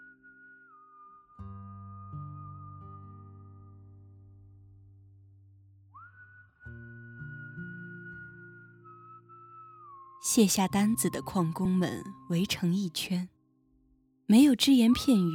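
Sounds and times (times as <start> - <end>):
soft human whistling: 0.0 - 4.2, 5.9 - 12.9, 14.6 - 15.3
speech: 10.2 - 13.4, 14.3 - 15.3.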